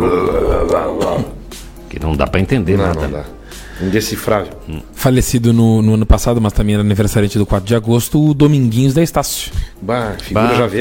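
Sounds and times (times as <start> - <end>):
speech: 0.0 - 1.4, 2.0 - 10.7
voice imitating a growling metal singer: 0.0 - 1.4.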